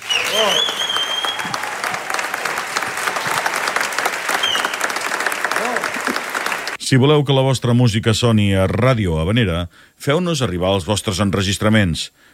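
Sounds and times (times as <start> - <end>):
concert audience applause: 0.0 - 6.8
speech: 0.3 - 0.9, 6.9 - 12.3.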